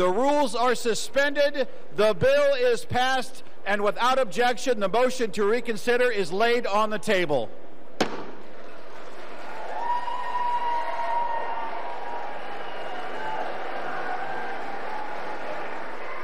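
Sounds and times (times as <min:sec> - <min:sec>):
speech: 0:00.0 - 0:07.6
sharp bang: 0:08.0 - 0:08.5
lawmakers cheering and applauding: 0:08.0 - 0:16.2.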